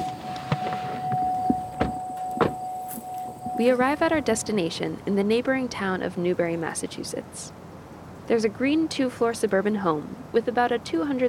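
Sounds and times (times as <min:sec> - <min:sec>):
pickup truck door and seat thumps and clunks: 0:00.0 - 0:02.6
rustling movement: 0:00.0 - 0:04.5
steady low hum: 0:00.0 - 0:07.6
speech: 0:03.6 - 0:07.6, 0:08.3 - 0:11.2.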